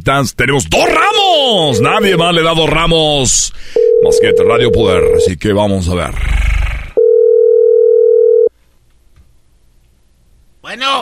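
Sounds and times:
speech: 0.0s - 6.5s, 10.7s - 10.9s
telephone dial tone while placing call: 3.8s - 5.3s, 7.0s - 8.5s.

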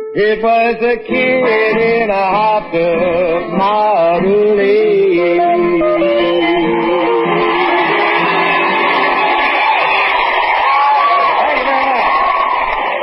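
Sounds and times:
speech: 0.1s - 6.0s
live audience cheering and whooping: 5.6s - 13.0s
whistles: 5.8s - 7.4s.

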